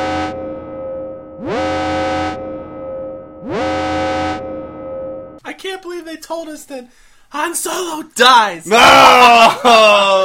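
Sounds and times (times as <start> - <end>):
alarm sound effect: 0.0 - 5.4
speech: 6.0 - 10.2.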